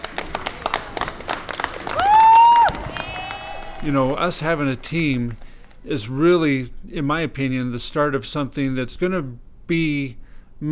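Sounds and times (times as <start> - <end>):
Fort Washakie fans cheering at a basketball game: 0.0 - 5.7
speech: 3.8 - 10.7.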